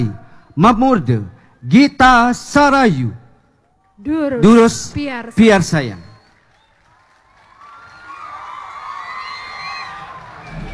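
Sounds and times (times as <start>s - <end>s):
speech: 0.0s - 3.2s, 4.0s - 6.0s
audience cheering and shouting: 7.5s - 10.7s.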